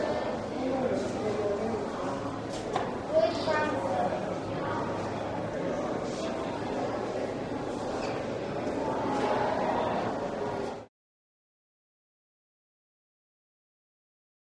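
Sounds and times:
echoey crowd walla in a museum: 0.0 - 10.9.

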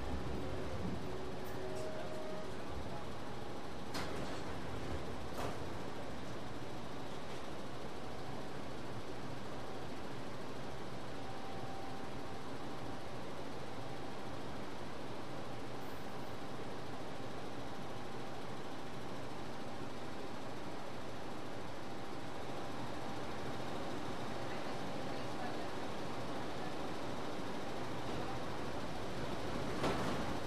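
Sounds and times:
old subway train interior: 0.0 - 30.4.

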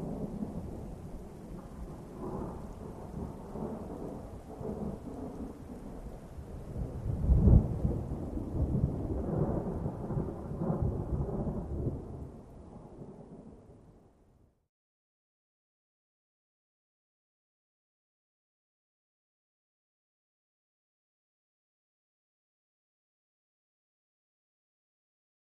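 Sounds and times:
distant thunder: 0.0 - 13.7.

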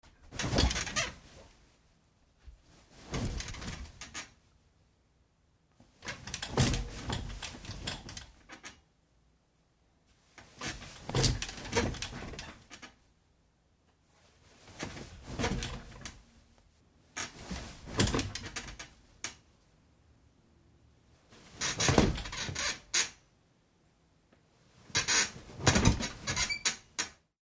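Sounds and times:
light bed spring squeaks: 0.3 - 1.4, 3.1 - 4.3, 6.0 - 8.8, 10.5 - 12.9, 14.7 - 16.2, 17.2 - 18.9, 21.5 - 23.2, 24.9 - 27.2.

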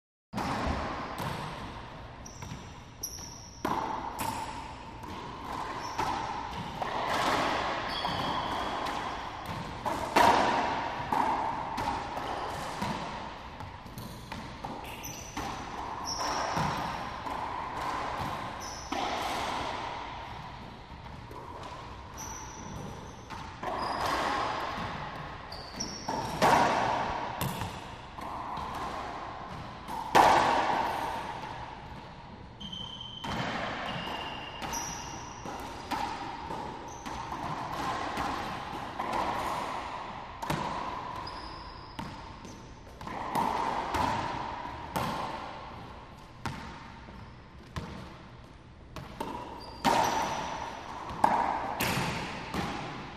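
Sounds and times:
racquetball game ambiance: 0.4 - 53.1.

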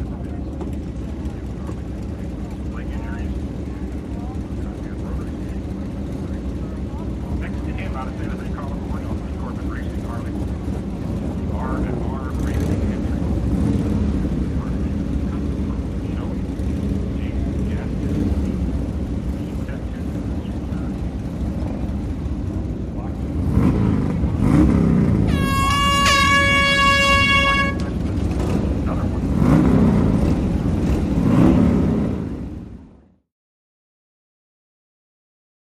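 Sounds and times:
motorcycles in a road race: 0.0 - 33.2.

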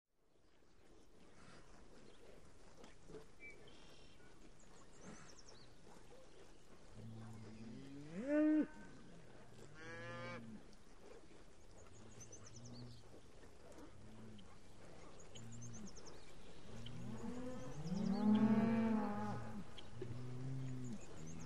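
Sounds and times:
cow mooing: 16.9 - 21.4.

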